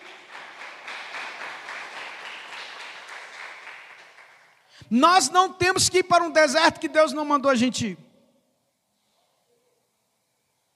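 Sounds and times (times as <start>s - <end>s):
audience applauding: 0.0s - 4.8s
speech: 4.9s - 8.0s.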